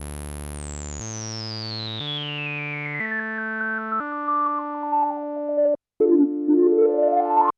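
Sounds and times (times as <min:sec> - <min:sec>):
MODOR NF-1 synthesizer with quantized filter: 0:02.0 - 0:07.5.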